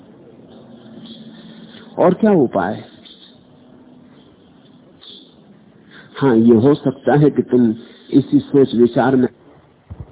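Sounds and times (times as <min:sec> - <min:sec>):
steady hiss: 0:00.0 - 0:10.1
faint birdsong: 0:00.4 - 0:02.0, 0:02.8 - 0:06.7
speech: 0:02.0 - 0:02.9, 0:06.2 - 0:09.4.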